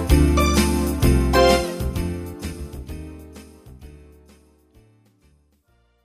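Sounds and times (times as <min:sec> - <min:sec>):
rock jingle: 0:00.2 - 0:02.6.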